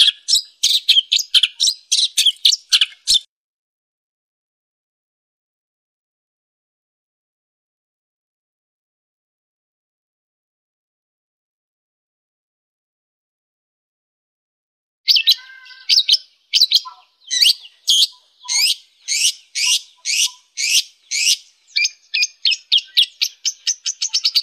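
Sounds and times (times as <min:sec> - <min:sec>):
long-tailed shrike chattering song: 0:00.0 - 0:03.3, 0:15.1 - 0:24.4.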